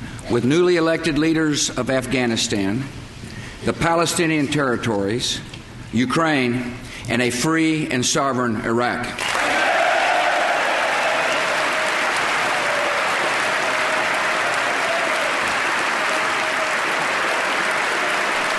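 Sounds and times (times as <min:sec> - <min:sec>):
speech: 0:00.3 - 0:09.4
large crowd applause for a speech: 0:09.2 - 0:18.5.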